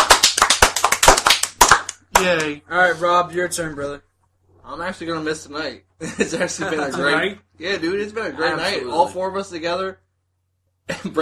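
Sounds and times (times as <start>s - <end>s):
hand claps: 0.0s - 2.6s
speech: 2.2s - 10.0s, 10.9s - 11.1s.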